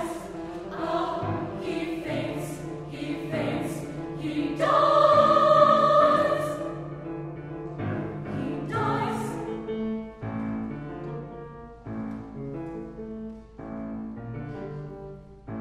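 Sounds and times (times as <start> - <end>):
solo chorus: 0.0 - 7.1, 8.2 - 9.7.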